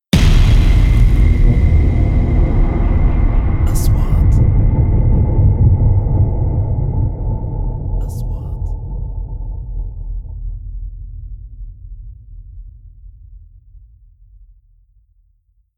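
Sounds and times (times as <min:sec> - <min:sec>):
3D trailer sound effects: 0:00.2 - 0:10.3.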